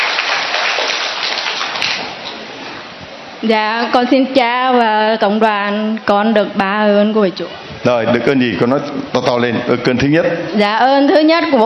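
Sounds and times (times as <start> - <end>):
audience applause: 0.0 - 2.5
speech: 3.4 - 11.6.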